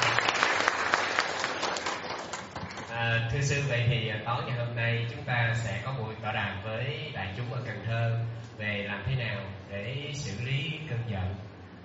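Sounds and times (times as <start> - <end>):
audience applause at a gathering on handling anger: 0.0 - 2.9
speech: 3.3 - 11.4.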